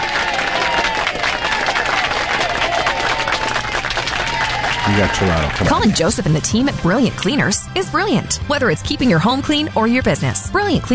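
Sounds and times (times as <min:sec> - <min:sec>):
crowd applauding and cheering: 0:00.0 - 0:06.4
speech: 0:04.9 - 0:10.9.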